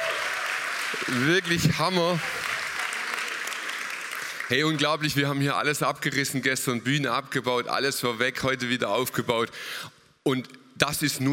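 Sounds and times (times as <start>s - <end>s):
crowd applause: 0.0s - 5.1s
speech: 0.9s - 2.4s, 4.5s - 11.3s.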